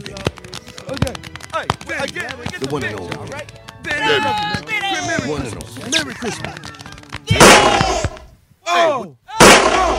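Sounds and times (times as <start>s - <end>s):
speech: 1.0s - 8.0s
laughter: 5.0s - 7.3s
gunshots fired during a Christmas party scene: 7.2s - 8.3s, 9.4s - 9.9s.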